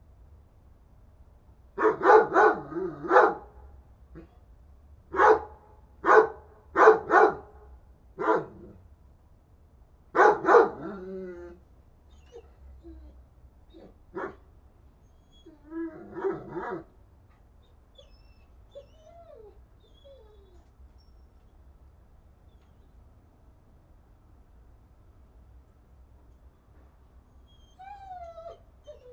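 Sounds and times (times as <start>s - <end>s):
dog barking: 1.8s - 3.5s, 5.1s - 7.6s, 8.2s - 8.7s, 10.2s - 11.0s, 14.2s - 14.4s, 16.1s - 16.9s.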